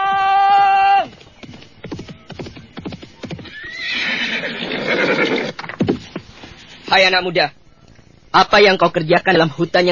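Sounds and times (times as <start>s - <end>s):
horse hooves clip-clopping: 1.0s - 6.6s
horse whinny: 3.4s - 5.6s
speech: 6.9s - 7.6s, 8.4s - 9.9s.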